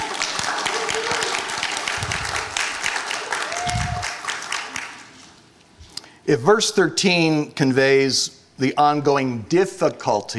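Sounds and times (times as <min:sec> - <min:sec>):
audience clapping: 0:00.0 - 0:05.3
speech: 0:06.3 - 0:10.3.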